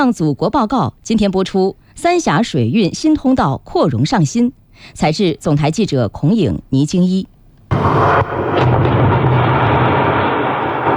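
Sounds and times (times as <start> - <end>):
speech: 0.0 - 8.9
blasting explosion at construction site: 7.7 - 10.9.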